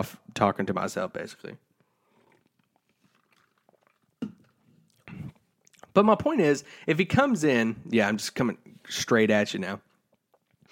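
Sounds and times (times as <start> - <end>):
speech: 0.0 - 1.7, 6.0 - 9.9
person taking a sip of water: 1.8 - 6.0, 9.9 - 10.7
cup or bottle being handled: 4.2 - 4.4.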